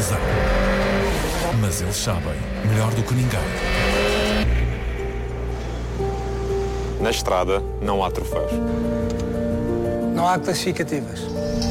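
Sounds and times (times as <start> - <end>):
rally car engine at the 2020 Rally da Madeira: 0.0 - 6.3
speech: 1.7 - 4.1, 7.0 - 9.5, 10.2 - 11.7.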